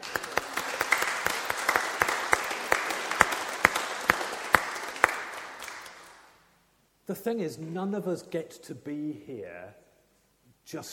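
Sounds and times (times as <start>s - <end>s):
audience applause: 0.0s - 6.4s
speech: 7.1s - 9.8s, 10.7s - 10.9s.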